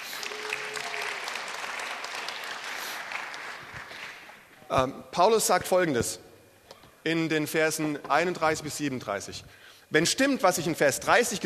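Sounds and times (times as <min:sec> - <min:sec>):
audience applause: 0:00.0 - 0:04.3
speech: 0:04.7 - 0:06.2, 0:07.0 - 0:11.4.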